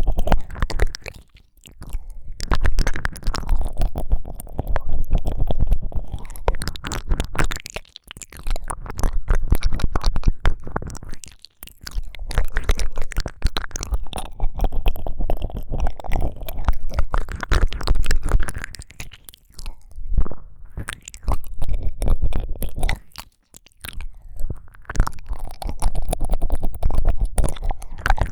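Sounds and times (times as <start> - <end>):
intense ear licking deep into the ear: 0.0 - 28.3.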